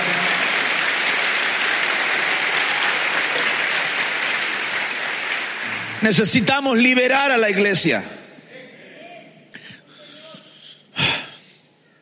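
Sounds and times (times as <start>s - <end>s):
audience clapping: 0.0s - 6.9s
speech: 6.0s - 8.2s.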